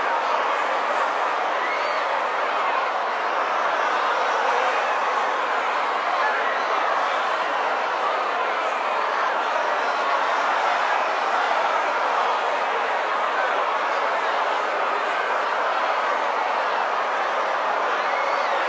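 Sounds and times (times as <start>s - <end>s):
large violent and angry mob shouting and protesting in a riot: 0.0s - 18.6s.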